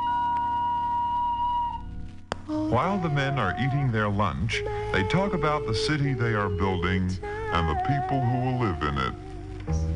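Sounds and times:
factory lunch whistle blowing: 0:00.0 - 0:01.9
speech: 0:02.5 - 0:09.8.

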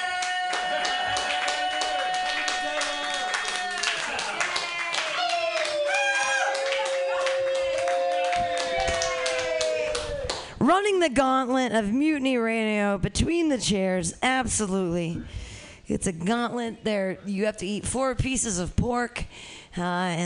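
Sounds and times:
people whooping and cheering: 0:00.0 - 0:10.4
small crowd clapping wildly: 0:00.0 - 0:10.5
speech: 0:10.7 - 0:20.2.

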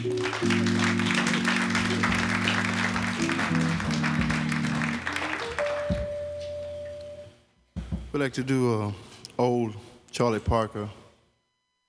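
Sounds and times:
live audience round of applause: 0:00.0 - 0:06.0
speech: 0:08.2 - 0:11.0.

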